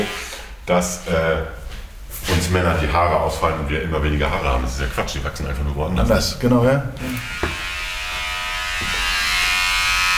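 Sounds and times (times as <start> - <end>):
speech: 0.0 - 1.6, 2.2 - 7.5
electric hair clipper running with loud motor buzz: 7.0 - 10.1.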